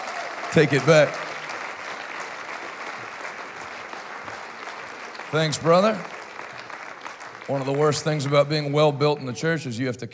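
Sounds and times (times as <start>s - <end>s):
church congregation clapping: 0.0s - 9.8s
speech: 0.5s - 1.2s, 5.3s - 6.1s, 7.5s - 10.1s.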